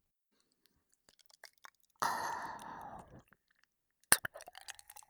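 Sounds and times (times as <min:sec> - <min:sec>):
binaural ear licking ASMR sounds: 0:01.0 - 0:05.0.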